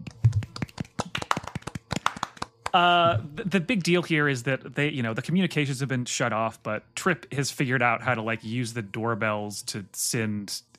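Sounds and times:
hosts clapping hands in applause: 0.0s - 3.3s
speech: 2.8s - 10.7s.

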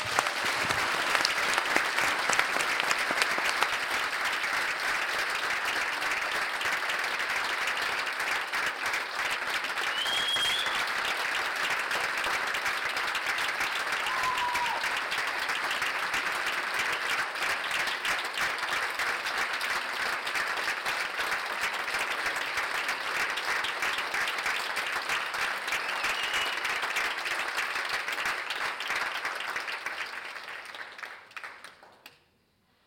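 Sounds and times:
festival crowd applause: 0.0s - 32.0s
whistles and cheers: 9.8s - 11.0s, 14.0s - 15.0s, 25.7s - 26.8s.

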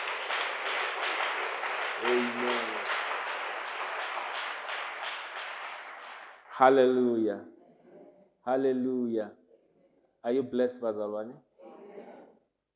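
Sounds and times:
audience clapping hands: 0.0s - 7.0s
speech: 2.0s - 2.7s, 6.6s - 7.6s, 8.5s - 9.4s, 10.2s - 11.5s.

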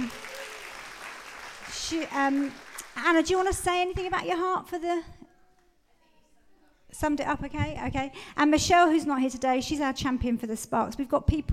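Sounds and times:
soft audience applause: 0.0s - 3.1s
speech: 1.9s - 5.2s, 6.9s - 11.5s.

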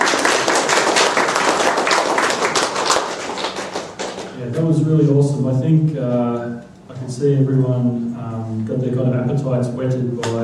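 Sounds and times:
applause: 0.0s - 4.4s
speech: 4.6s - 10.4s.

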